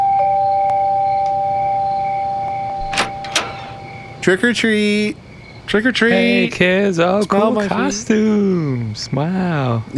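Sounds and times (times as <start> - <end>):
doorbell ringing: 0.0 - 4.0
speech: 4.2 - 9.9.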